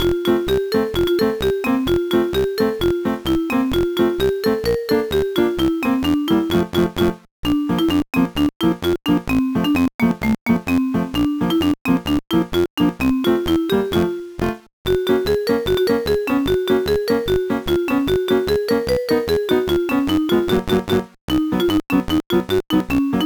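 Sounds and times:
background music: 0:00.0 - 0:23.2.

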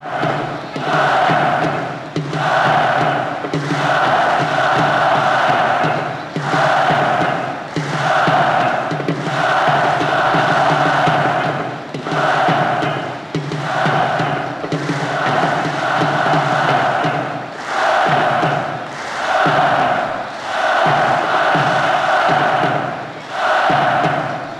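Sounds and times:
half-time crowd noise loop: 0:00.0 - 0:24.5.

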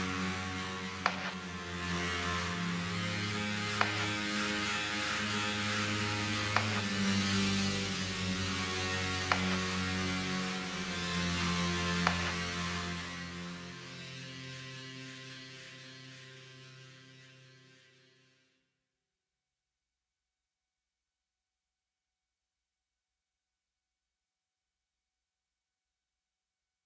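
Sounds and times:
loading up pads effect: 0:00.0 - 0:13.4.

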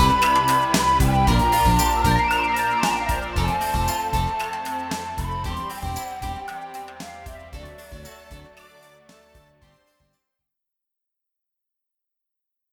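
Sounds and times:
battle victory music: 0:00.0 - 0:08.8.

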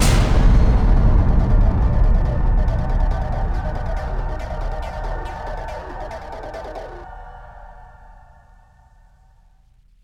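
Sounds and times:
bomb timer: 0:00.0 - 0:07.8.

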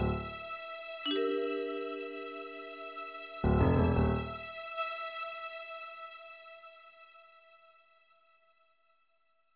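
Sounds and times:
tense orchestral music: 0:00.0 - 0:00.5, 0:01.1 - 0:04.7.

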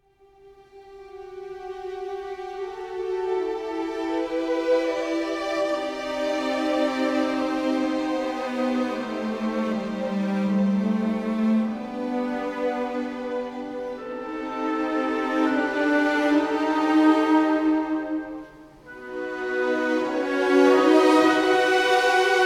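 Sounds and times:
classical music on the radio: 0:00.0 - 0:22.4.

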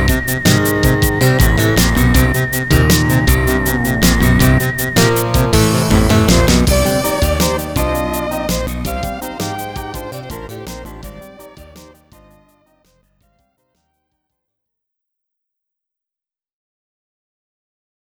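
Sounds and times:
background music from a MIDI CM-64 sound source: 0:00.0 - 0:12.7.

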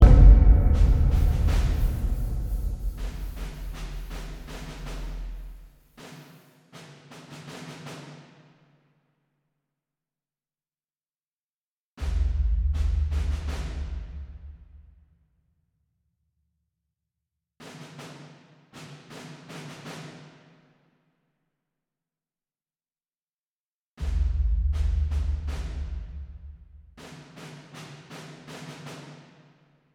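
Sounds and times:
militant drums: 0:00.0 - 0:08.4, 0:12.0 - 0:14.9, 0:17.6 - 0:20.6, 0:24.0 - 0:29.3.

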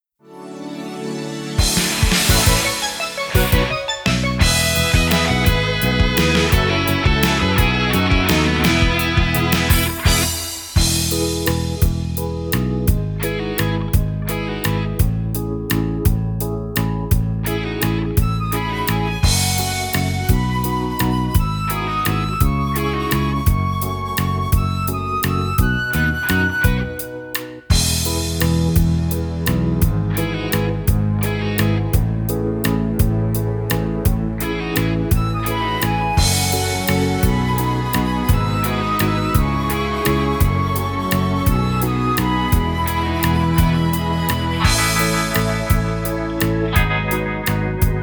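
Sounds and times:
instrumental waltz: 0:00.2 - 0:48.0.

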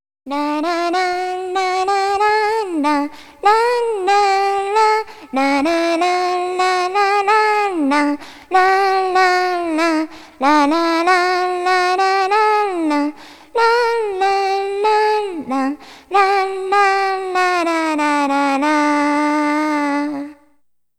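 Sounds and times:
girl singing solo opening song: 0:00.3 - 0:20.5.

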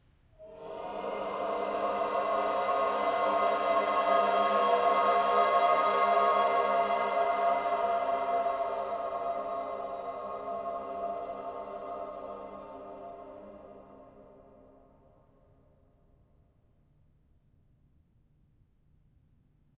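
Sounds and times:
choir singing: 0:00.4 - 0:15.1.

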